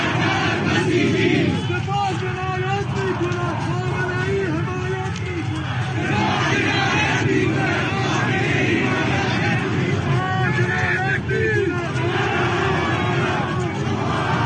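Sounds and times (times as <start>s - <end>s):
protest crowd chanting in the streets of Sistan and Baluchestan, Iran: 0.0s - 14.4s.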